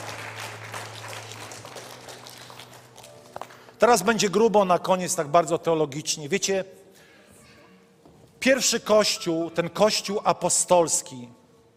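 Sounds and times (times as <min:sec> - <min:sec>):
audience applause: 0:00.0 - 0:03.3
speech: 0:03.8 - 0:06.9, 0:08.4 - 0:11.4.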